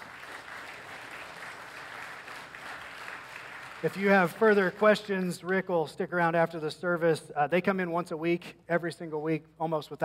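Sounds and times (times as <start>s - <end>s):
audience round of applause: 0.0s - 4.9s
speech: 3.8s - 10.0s.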